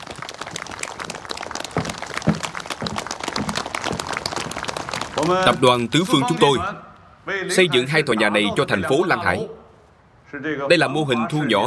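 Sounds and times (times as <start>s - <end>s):
audience applause: 0.0s - 6.8s
speech: 5.2s - 9.6s, 10.3s - 11.6s.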